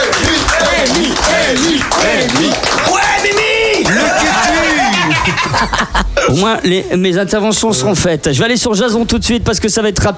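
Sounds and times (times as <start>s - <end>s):
applause and clapping: 0.0s - 5.5s
laughter: 3.8s - 6.4s
speech: 5.6s - 10.1s.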